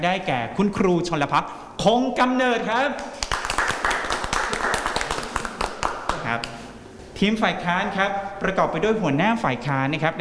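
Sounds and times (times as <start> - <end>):
speech: 0.0 - 3.2, 6.3 - 6.6, 7.2 - 10.2
audience applause: 3.2 - 6.2.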